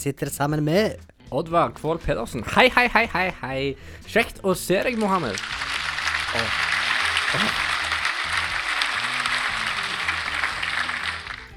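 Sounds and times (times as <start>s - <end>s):
speech: 0.0s - 5.7s, 6.3s - 6.7s, 7.3s - 7.7s
crowd applauding: 4.8s - 11.5s.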